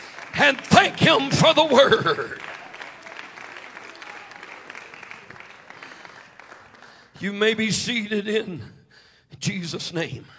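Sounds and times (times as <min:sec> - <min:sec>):
church congregation clapping hands in worship: 0:00.0 - 0:07.6
speech: 0:00.4 - 0:02.5, 0:07.2 - 0:08.8, 0:09.4 - 0:10.3.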